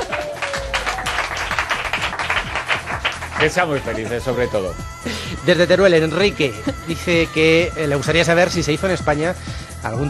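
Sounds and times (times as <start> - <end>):
applause: 0.0 - 4.0
speech: 3.4 - 10.0.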